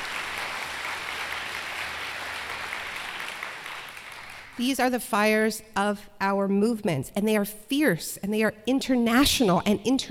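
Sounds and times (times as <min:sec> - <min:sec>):
audience applause: 0:00.0 - 0:04.6
speech: 0:04.6 - 0:10.0.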